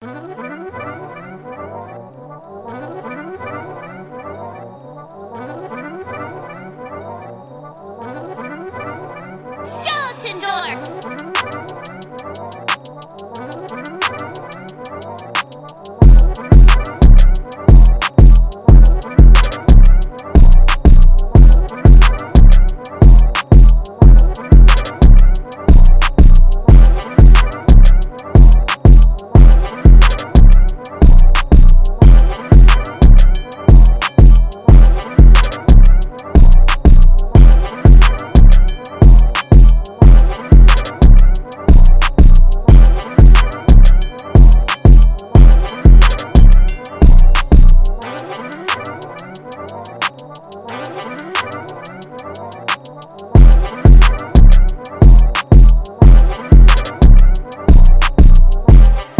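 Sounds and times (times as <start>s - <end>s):
beat at 180 bpm: 10.0s - 59.1s.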